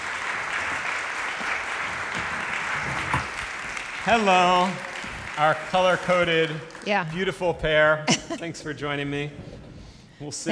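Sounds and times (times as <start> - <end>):
audience clapping: 0.0 - 8.0
speech: 4.0 - 9.4, 10.2 - 10.5.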